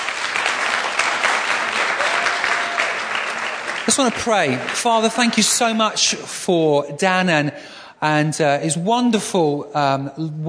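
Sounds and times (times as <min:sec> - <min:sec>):
audience in London applauding a guest speaker: 0:00.0 - 0:06.2
speech: 0:03.9 - 0:10.4.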